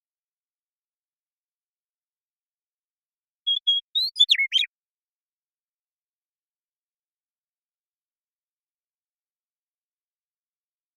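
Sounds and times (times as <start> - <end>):
western meadowlark song: 3.4 - 4.8.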